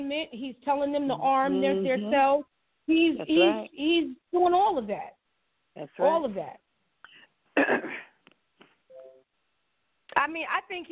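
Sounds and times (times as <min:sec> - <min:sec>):
speech: 0:00.0 - 0:05.2, 0:05.8 - 0:06.6, 0:07.6 - 0:08.0, 0:10.2 - 0:10.9
throat clearing: 0:07.6 - 0:08.2.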